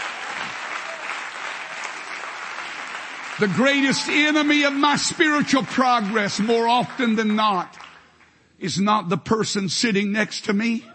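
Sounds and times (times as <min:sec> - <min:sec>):
audience clapping: 0:00.0 - 0:08.4
speech: 0:03.4 - 0:07.8, 0:08.6 - 0:10.9.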